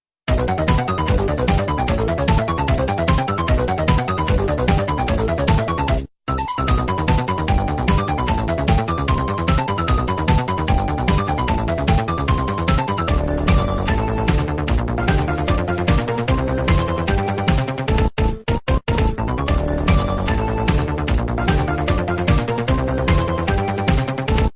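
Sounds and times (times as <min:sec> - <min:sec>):
boss battle background music: 0:00.3 - 0:24.5.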